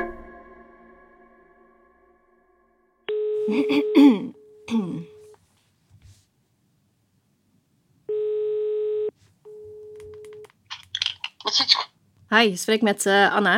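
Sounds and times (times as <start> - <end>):
telephone ringing tones as a call is placed: 3.1 - 5.3, 8.1 - 10.4
speech: 3.5 - 4.3, 12.4 - 13.5
throat clearing: 3.5 - 5.2
cough: 3.6 - 5.1.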